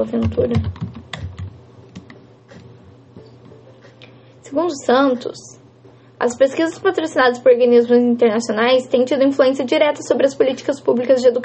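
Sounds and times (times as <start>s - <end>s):
speech: 0.0s - 0.9s, 4.5s - 5.6s, 6.2s - 11.4s
typing academic text on a computer keyboard: 0.2s - 2.1s.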